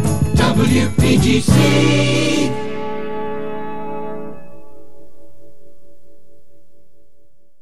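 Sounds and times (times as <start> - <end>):
FM radio station ID jingle: 0.1 - 3.3.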